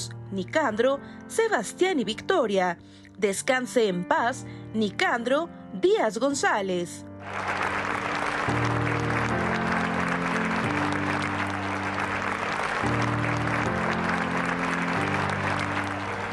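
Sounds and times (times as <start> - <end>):
speech: 0.0 - 7.8
standing applause at a funeral: 7.2 - 16.3.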